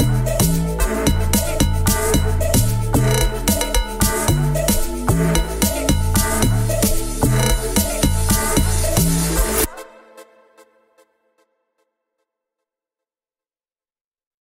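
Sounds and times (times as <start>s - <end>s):
instrumental music: 0.0s - 9.8s.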